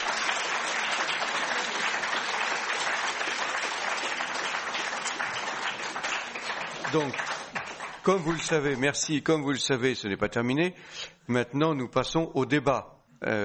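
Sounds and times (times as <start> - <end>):
warm applause: 0.0 - 8.8
speech: 6.9 - 7.3, 8.0 - 13.4.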